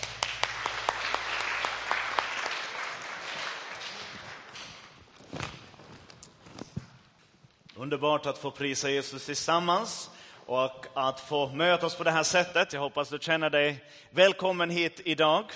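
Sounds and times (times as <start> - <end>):
audience applause: 0.0 - 5.0
speech: 7.8 - 15.5.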